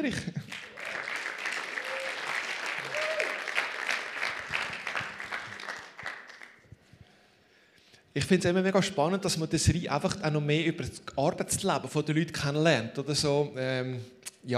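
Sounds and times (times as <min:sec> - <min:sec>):
speech: 0:00.0 - 0:00.4, 0:08.2 - 0:14.5
audience applause: 0:00.4 - 0:06.6.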